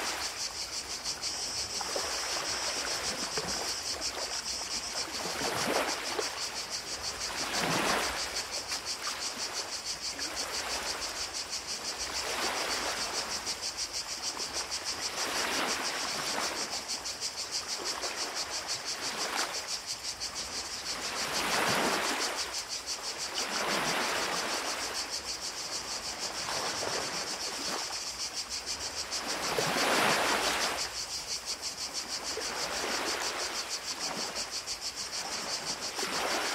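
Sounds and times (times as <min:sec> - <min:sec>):
cicadas: 0:00.0 - 0:36.5
ocean: 0:00.0 - 0:36.5.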